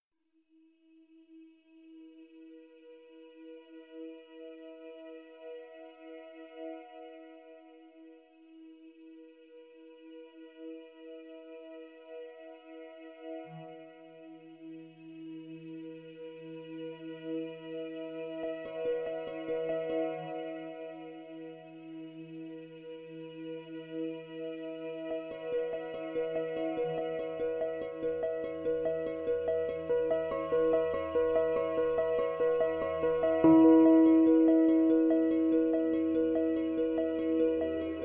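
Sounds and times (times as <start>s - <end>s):
vocals at 432 Hz: 1.0s - 38.0s.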